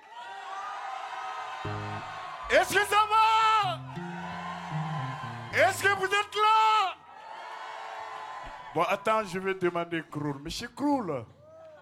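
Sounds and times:
crowd shouting and cheering: 0:00.0 - 0:09.3
speech: 0:02.5 - 0:03.8, 0:05.6 - 0:06.9, 0:08.8 - 0:11.4.

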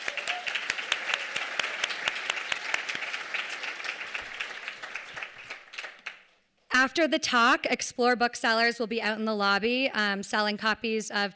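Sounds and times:
audience applause: 0:00.0 - 0:06.3
speech: 0:06.8 - 0:11.3.

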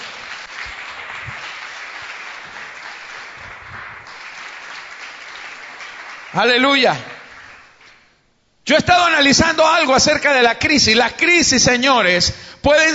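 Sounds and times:
audience applause: 0:00.0 - 0:08.0
speech: 0:06.4 - 0:07.1, 0:08.7 - 0:12.9.

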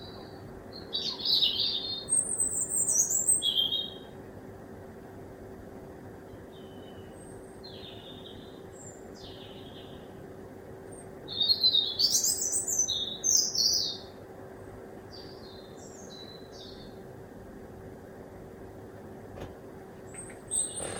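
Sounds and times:
birdsong recorded from a kitchen window: 0:00.0 - 0:04.1, 0:06.3 - 0:10.2, 0:11.0 - 0:14.1, 0:15.1 - 0:17.0, 0:20.1 - 0:20.9
steady low hum with a faint constant tone: 0:00.0 - 0:20.9.

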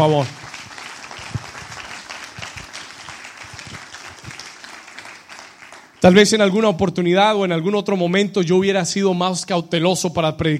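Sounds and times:
speech: 0:00.0 - 0:00.4, 0:06.0 - 0:10.5
audience applauding: 0:00.0 - 0:06.2.

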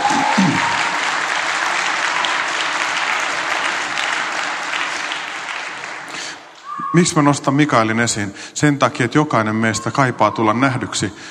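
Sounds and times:
audience applause: 0:00.0 - 0:06.9
speech: 0:06.9 - 0:11.3.

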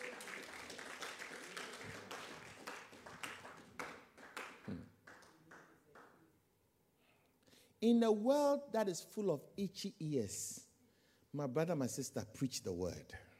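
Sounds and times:
crowd clapping: 0:00.0 - 0:06.2
speech: 0:04.7 - 0:04.9, 0:07.8 - 0:10.7, 0:11.3 - 0:13.3.

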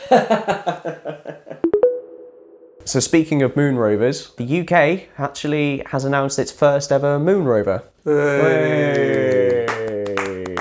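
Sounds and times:
laughter: 0:00.0 - 0:01.6
speech: 0:00.1 - 0:01.5, 0:02.9 - 0:09.6
couple of voices cheering: 0:08.1 - 0:10.5
light handclaps: 0:08.8 - 0:10.5.

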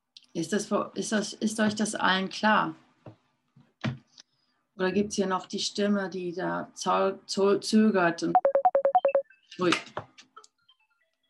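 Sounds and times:
speech: 0:00.4 - 0:02.8, 0:04.8 - 0:08.5, 0:09.6 - 0:10.0
phone two-tone electronic beeps signalling an incoming call: 0:08.4 - 0:09.2.

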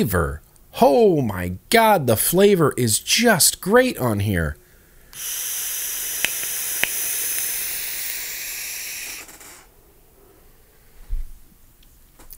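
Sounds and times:
speech: 0:00.0 - 0:04.6, 0:05.2 - 0:05.5
vape hissing during a draw: 0:05.1 - 0:09.7
sharp ticks: 0:06.2 - 0:08.2.

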